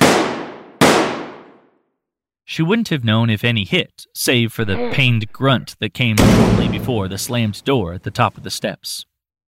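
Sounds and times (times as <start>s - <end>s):
pistol shots: 0.0s - 1.7s, 6.2s - 7.0s
speech: 2.6s - 9.1s.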